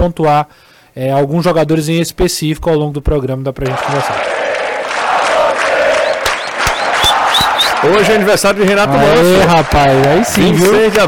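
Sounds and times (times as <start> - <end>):
speech: 0.0 - 4.4, 7.8 - 11.0
massive stadium crowd singing: 3.6 - 8.3
sharp claps or bangs: 3.6 - 11.0.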